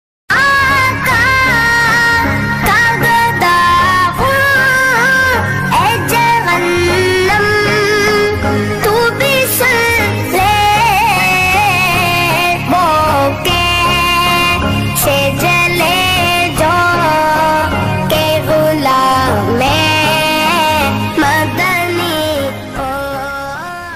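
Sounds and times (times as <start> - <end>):
Islamic naat devotional chant ringtone: 0.3 - 23.9.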